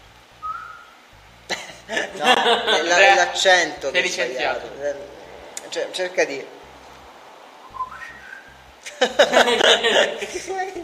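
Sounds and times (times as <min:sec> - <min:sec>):
whistled greeting in Silbo Gomero, the whistled language of La Gomera: 0:00.4 - 0:01.0, 0:07.6 - 0:08.5
laughter: 0:01.5 - 0:03.4, 0:08.8 - 0:10.8
speech: 0:01.9 - 0:06.6, 0:09.0 - 0:10.8.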